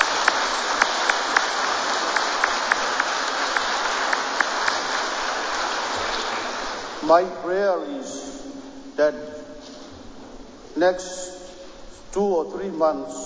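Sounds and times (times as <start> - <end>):
audience applause for the choir: 0.0 - 7.1
speech: 7.1 - 9.3, 10.8 - 11.4, 12.1 - 13.2.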